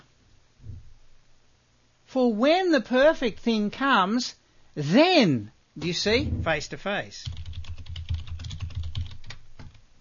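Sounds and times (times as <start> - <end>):
speech: 2.1 - 7.4
typing on a computer keyboard: 7.2 - 9.8.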